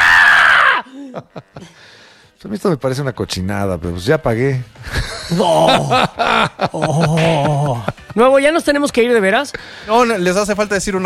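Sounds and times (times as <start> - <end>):
loud shrill scream sound effect: 0.0 - 0.9
laughter: 0.9 - 1.8, 4.8 - 8.4
speech: 1.2 - 11.0.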